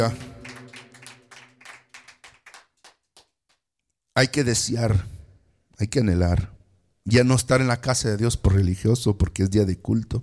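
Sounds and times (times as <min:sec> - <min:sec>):
speech: 0:00.0 - 0:00.3, 0:04.2 - 0:05.2, 0:05.8 - 0:10.2
faint sustained low humming tone: 0:00.0 - 0:01.9
crowd clapping in a steady quick rhythm: 0:00.0 - 0:03.6.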